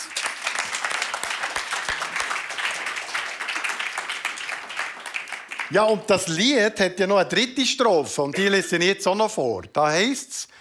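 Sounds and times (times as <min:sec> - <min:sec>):
audience applause: 0:00.0 - 0:06.3
speech: 0:05.7 - 0:10.6.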